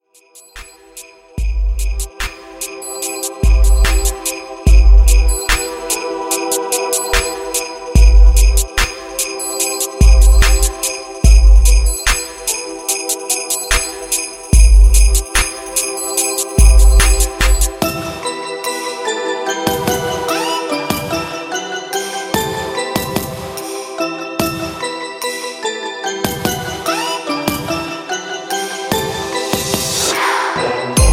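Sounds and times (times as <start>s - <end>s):
Christmas hip hop trap beat: 0.2s - 31.1s.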